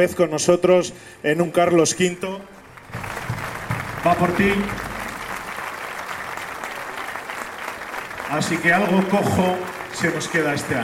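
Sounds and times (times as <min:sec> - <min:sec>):
speech: 0:00.0 - 0:03.2, 0:04.0 - 0:04.9, 0:08.3 - 0:10.8
audience applause for Antoine: 0:02.6 - 0:10.8.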